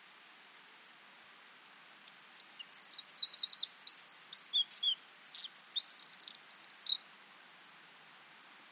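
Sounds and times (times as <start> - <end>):
Eurasian wren Troglodytes troglodytes song: 2.0 - 7.1.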